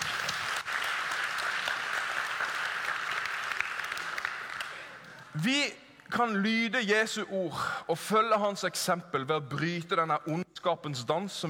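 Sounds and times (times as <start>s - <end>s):
audience applause: 0.0s - 5.3s
speech: 5.4s - 11.4s.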